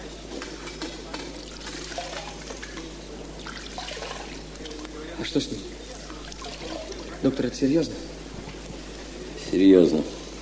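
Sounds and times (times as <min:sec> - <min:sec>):
water poured for washing hands: 0:01.5 - 0:04.8, 0:06.2 - 0:07.2
speech: 0:05.2 - 0:05.8, 0:07.2 - 0:08.1, 0:09.6 - 0:10.2.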